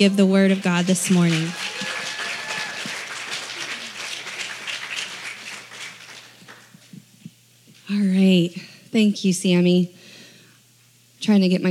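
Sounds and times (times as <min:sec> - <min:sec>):
speech: 0:00.0 - 0:01.8, 0:07.9 - 0:10.0, 0:11.2 - 0:11.6
audience applause: 0:00.4 - 0:06.9.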